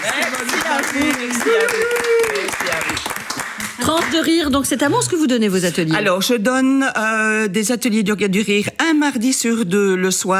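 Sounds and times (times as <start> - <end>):
audience applause: 0.0 - 4.4
speech: 0.4 - 2.1, 4.0 - 10.3.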